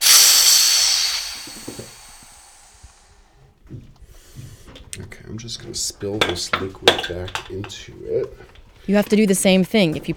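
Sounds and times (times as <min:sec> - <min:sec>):
pressure releasing from fermentation tank lid: 0:00.0 - 0:03.1
speech: 0:05.4 - 0:10.1.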